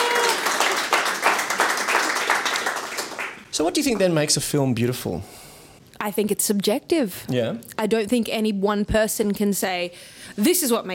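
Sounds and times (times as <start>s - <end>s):
round of applause: 0.0s - 4.1s
speech: 3.6s - 5.4s, 6.0s - 10.9s.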